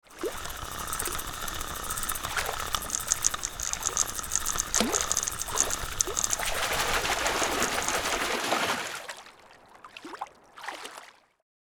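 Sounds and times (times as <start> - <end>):
fly fishing catching a fish: 0.0 - 9.2.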